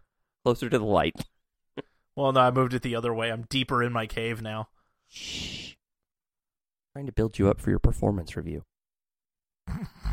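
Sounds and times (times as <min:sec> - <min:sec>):
speech: 0:00.4 - 0:05.5, 0:07.0 - 0:08.7
imitated snore: 0:09.7 - 0:10.1.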